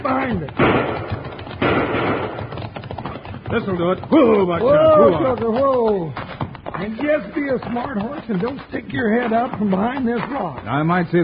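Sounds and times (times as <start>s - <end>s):
speech: 0.0s - 1.1s, 3.5s - 6.2s, 6.8s - 11.2s
gunshot: 0.6s - 2.6s.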